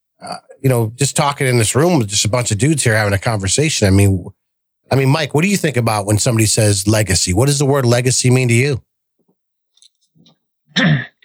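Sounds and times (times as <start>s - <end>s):
throat clearing: 0.2s - 0.6s, 10.8s - 11.2s
speech: 0.2s - 8.9s, 10.8s - 11.2s.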